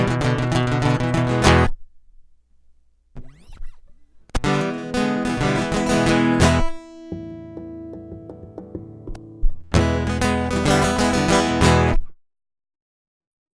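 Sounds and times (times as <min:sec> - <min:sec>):
guitar loop: 0:00.0 - 0:01.7, 0:04.5 - 0:11.6.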